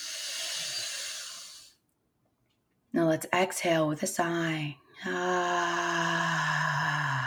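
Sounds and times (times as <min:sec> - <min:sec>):
deep inhale through the nostrils during a guided meditation: 0:00.0 - 0:01.8
speech: 0:02.9 - 0:06.2.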